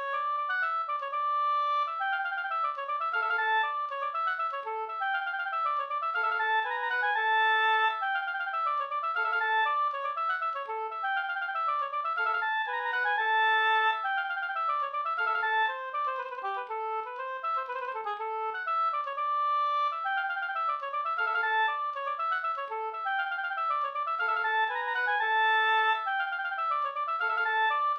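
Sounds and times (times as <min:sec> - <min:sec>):
polska dance tune: 0:00.1 - 0:27.9.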